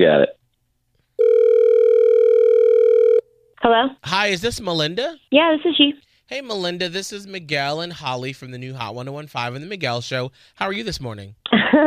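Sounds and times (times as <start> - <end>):
speech: 0.0 - 0.4, 3.7 - 11.8
telephone line tone: 1.2 - 3.3.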